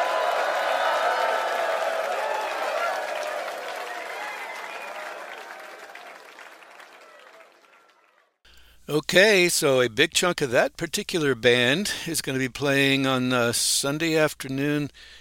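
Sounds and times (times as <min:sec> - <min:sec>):
audience applause: 0:00.0 - 0:08.4
speech: 0:08.9 - 0:15.1.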